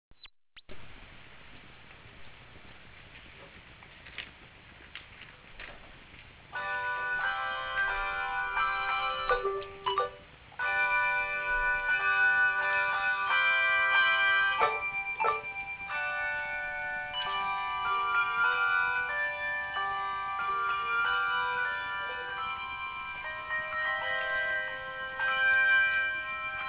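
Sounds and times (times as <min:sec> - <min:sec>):
bells ringing: 0:06.6 - 0:26.6.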